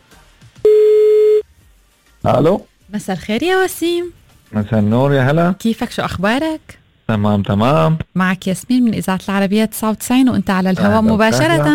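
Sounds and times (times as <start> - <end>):
ringback tone from an outgoing telephone call: 0.7 - 1.4
speech: 2.2 - 11.7.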